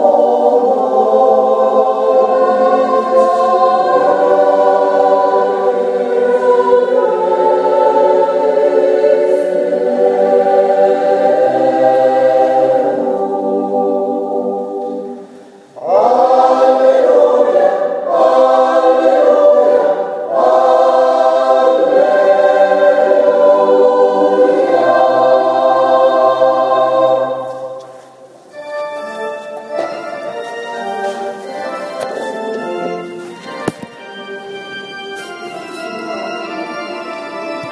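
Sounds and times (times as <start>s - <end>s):
choral hymn: 0.0s - 37.6s.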